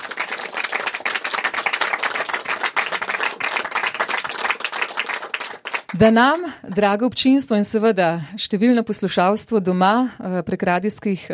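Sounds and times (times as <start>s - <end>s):
audience applause: 0.0s - 6.4s
speech: 6.0s - 11.3s.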